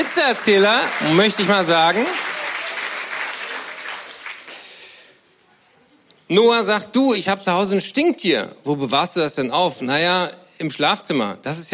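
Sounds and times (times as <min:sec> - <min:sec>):
speech: 0:00.0 - 0:02.3, 0:06.3 - 0:11.7
audience applause: 0:00.0 - 0:04.9.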